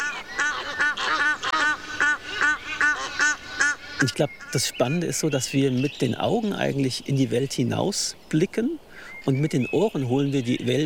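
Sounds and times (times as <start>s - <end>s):
Egyptian geese calling while mating: 0.0s - 5.1s
speech: 4.0s - 10.8s.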